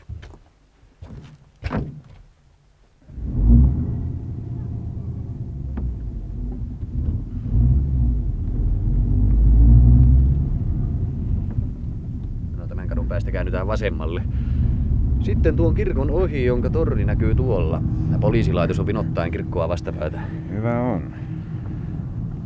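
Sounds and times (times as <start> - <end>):
car engine starting: 3.0 - 22.4
speech: 13.7 - 14.4, 15.2 - 21.3.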